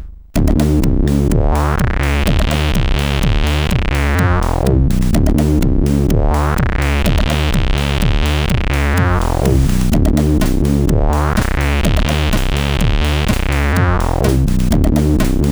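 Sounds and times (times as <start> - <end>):
SID CSG8580 chiptune synthesizer: 0.4 - 15.5.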